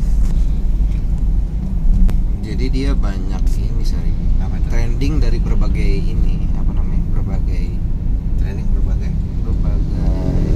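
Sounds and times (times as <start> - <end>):
faint wind noise: 0.0 - 10.5
low rumble inside a car while driving: 0.0 - 10.5
speech: 2.6 - 6.4.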